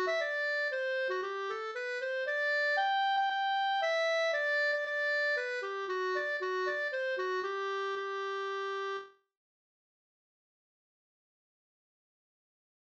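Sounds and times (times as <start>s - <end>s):
mazurka: 0.0s - 9.0s.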